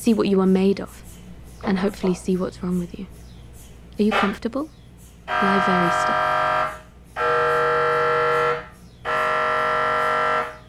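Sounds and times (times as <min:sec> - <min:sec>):
speech: 0:00.0 - 0:03.2, 0:04.0 - 0:06.3
medical imaging scanner buzzing: 0:05.3 - 0:10.6.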